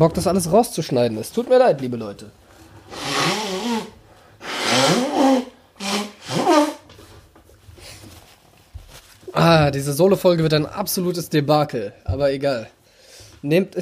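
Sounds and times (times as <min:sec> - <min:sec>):
speech: 0:00.0 - 0:03.1, 0:09.5 - 0:12.8, 0:13.4 - 0:13.7
nose blowing: 0:02.8 - 0:06.9.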